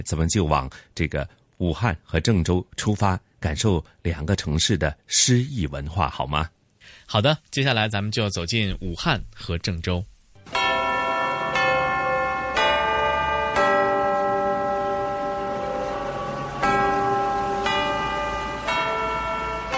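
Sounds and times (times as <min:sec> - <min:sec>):
speech: 0:00.0 - 0:10.6
Jianghan Customs House clock tower bell chiming: 0:10.5 - 0:19.7.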